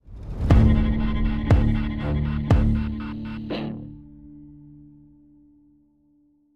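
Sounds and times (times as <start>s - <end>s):
tension music stop at 120 bpm: 0.0s - 5.2s.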